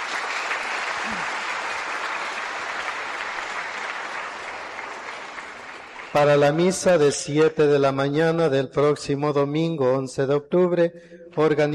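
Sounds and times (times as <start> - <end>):
church audience applause: 0.0 - 6.7
speech: 6.2 - 11.7.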